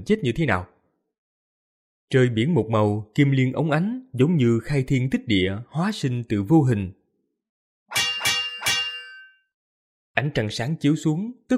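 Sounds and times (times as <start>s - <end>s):
speech: 0.0s - 0.7s, 2.1s - 7.0s, 10.2s - 11.5s
bright metallic clangs: 7.9s - 9.4s.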